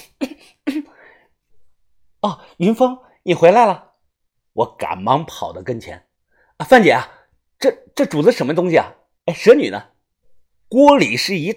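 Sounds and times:
person coughing: 0.0 - 1.1
speech: 2.2 - 3.9, 4.6 - 9.9, 10.7 - 11.5.

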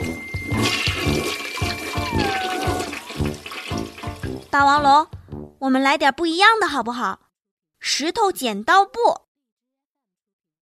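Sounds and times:
thin rising whistle of toilet tank refilling: 0.0 - 4.2
smart toilet flushing: 0.0 - 4.6
speech: 4.6 - 7.2, 7.8 - 9.2.

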